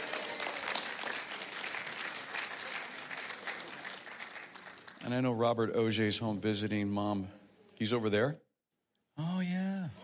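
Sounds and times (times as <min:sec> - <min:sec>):
audience applause: 0:00.0 - 0:05.0
speech: 0:05.1 - 0:08.4.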